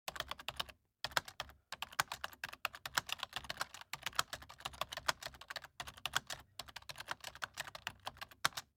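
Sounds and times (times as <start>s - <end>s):
typing: 0.1s - 8.7s.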